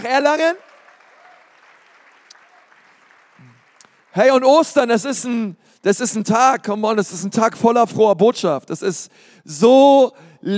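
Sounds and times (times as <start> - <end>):
speech: 0.0 - 0.7, 4.2 - 10.5
audience applause: 0.0 - 4.7.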